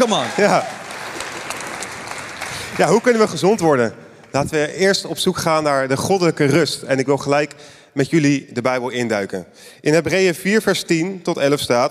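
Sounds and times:
speech: 0.0s - 0.8s, 2.8s - 11.8s
audience applause: 0.0s - 4.5s.

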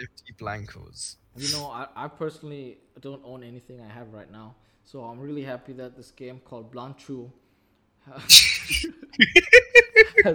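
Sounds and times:
speech: 0.0s - 7.4s, 8.0s - 10.3s
person sneezing: 1.4s - 1.6s, 8.3s - 9.0s
laughter: 8.4s - 10.3s.

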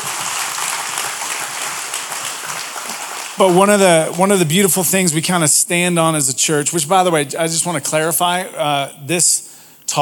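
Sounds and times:
church congregation applauding to welcome online viewers: 0.0s - 5.0s
speech: 3.4s - 10.0s.

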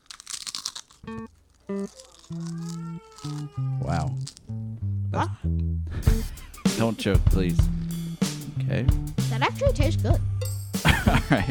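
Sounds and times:
biting into potato chips: 0.0s - 4.6s
speech: 1.1s - 8.0s, 8.6s - 11.4s
laughter: 10.8s - 11.4s.

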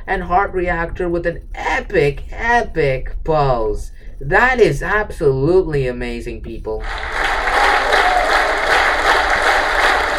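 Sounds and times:
speech: 0.1s - 7.2s
applause from many hands: 6.8s - 10.1s.

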